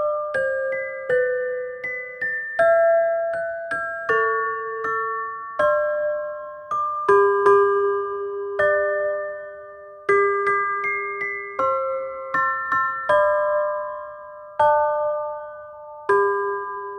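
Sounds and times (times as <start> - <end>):
chime melody: 0.0 - 16.9.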